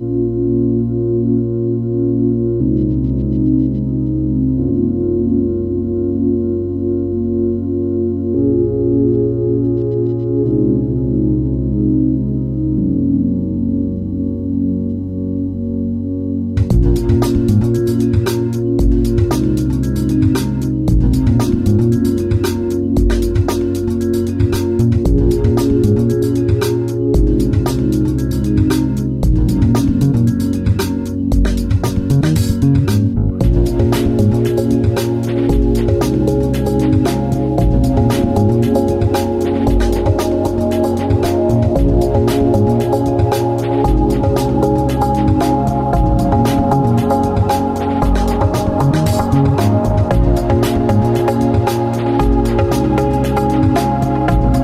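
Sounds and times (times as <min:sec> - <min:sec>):
music loop: 0:00.0 - 0:54.6.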